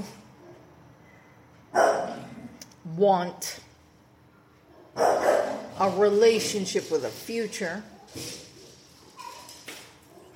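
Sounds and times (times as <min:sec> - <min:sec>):
female dog barking: 0:01.7 - 0:02.2, 0:04.7 - 0:05.7
speech: 0:02.9 - 0:03.7, 0:05.8 - 0:08.4.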